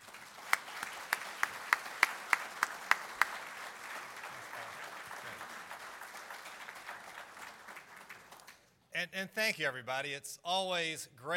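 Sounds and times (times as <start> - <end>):
audience applause welcoming the speaker at a Virginia author talk: 0.0 - 8.6
sharp evenly spaced claps: 0.0 - 8.7
speech: 9.0 - 11.3.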